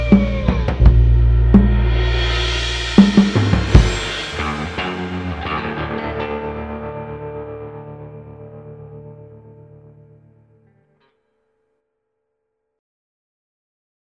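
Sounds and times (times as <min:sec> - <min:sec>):
atmospheric muffled drums: 0:00.0 - 0:07.3
bass guitar: 0:00.0 - 0:11.0.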